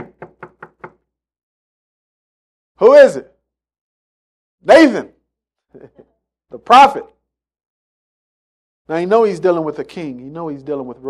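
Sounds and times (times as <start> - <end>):
knocking on a door: 0.0 - 1.0
speech: 2.8 - 3.3, 4.6 - 5.1, 5.7 - 7.1, 8.9 - 11.0.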